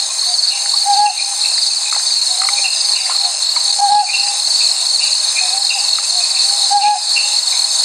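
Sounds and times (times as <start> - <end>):
Ryukyu ruddy kingfisher song: 0.8 - 1.4, 3.8 - 4.4, 6.6 - 7.3.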